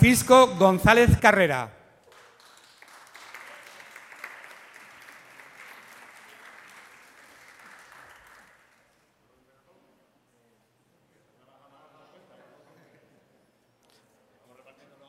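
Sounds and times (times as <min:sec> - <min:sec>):
speech: 0:00.1 - 0:01.8
crowd applauding: 0:02.0 - 0:09.0.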